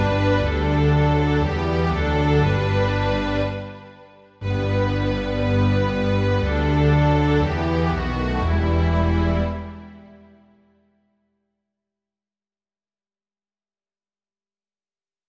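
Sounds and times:
string orchestra: 0.0s - 10.6s.

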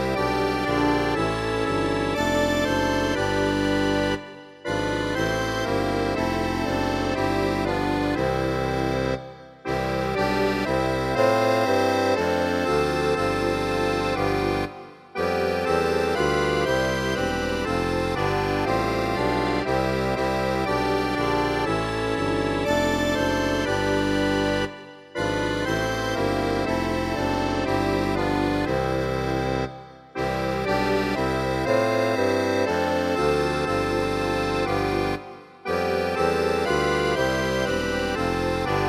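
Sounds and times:
accordion: 0.0s - 38.8s
contrabassoon: 0.0s - 38.8s.

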